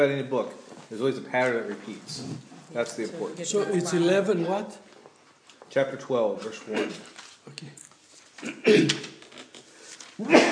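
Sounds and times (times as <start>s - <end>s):
speech: 0.0s - 4.9s, 5.7s - 9.1s, 10.2s - 10.5s
sneezing: 6.6s - 7.2s, 8.4s - 9.2s, 10.2s - 10.5s.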